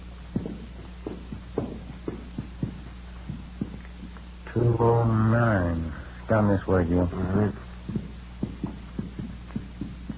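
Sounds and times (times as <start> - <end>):
footsteps climbing hotel stairs: 0.0 - 5.2, 7.2 - 10.1
low noise: 0.0 - 10.1
speech: 4.6 - 8.0.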